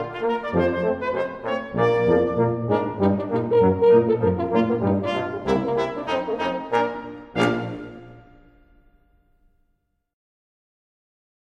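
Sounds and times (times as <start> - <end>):
brass ragtime music: 0.0 - 8.9.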